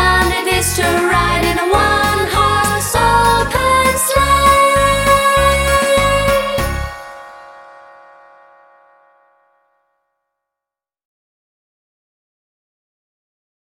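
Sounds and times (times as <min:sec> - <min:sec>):
Christmas song in English: 0:00.0 - 0:09.6.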